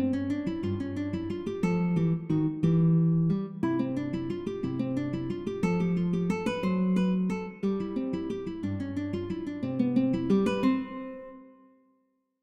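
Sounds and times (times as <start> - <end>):
solo guitar bagatelles: 0.0 - 11.8.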